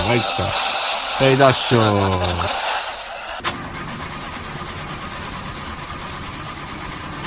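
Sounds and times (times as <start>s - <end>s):
laughter: 0.0s - 3.4s
speech: 0.1s - 2.8s
car engine cranking but failing to start, suspected clutch plate fault: 3.3s - 7.2s.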